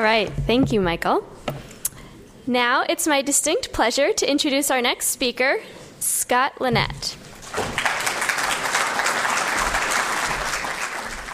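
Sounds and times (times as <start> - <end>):
speech: 0.0 - 1.3, 2.4 - 7.7
audience applause: 7.4 - 11.3.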